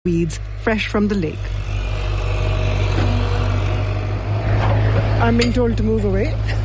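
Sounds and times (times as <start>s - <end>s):
speech: 0.0s - 1.7s, 5.2s - 6.6s
heavy truck engine droning: 0.1s - 6.6s.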